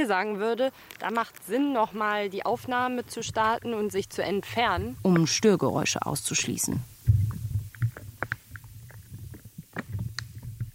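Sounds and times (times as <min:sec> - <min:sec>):
speech: 0:00.0 - 0:06.9
popping and crunching of life in soil: 0:00.6 - 0:10.7
low steady rumbling hum: 0:02.4 - 0:10.7.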